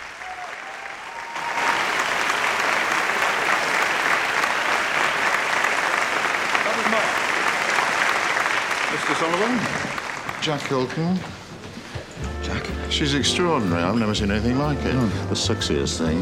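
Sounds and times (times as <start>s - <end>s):
audience applause: 0.0s - 11.1s
speech: 9.1s - 11.4s, 12.5s - 16.2s.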